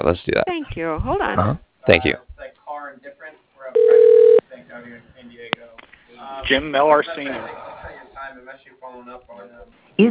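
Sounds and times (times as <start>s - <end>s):
speech: 0.0s - 2.3s, 4.8s - 7.7s, 8.3s - 10.0s
telephone line tone as a call is transferred to voicemail: 3.8s - 4.4s.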